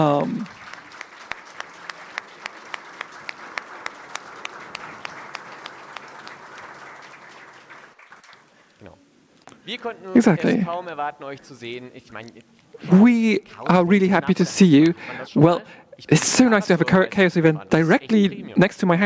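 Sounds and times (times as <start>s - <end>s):
speech: 0.0s - 0.6s, 9.7s - 19.0s
audience applause: 0.0s - 8.7s.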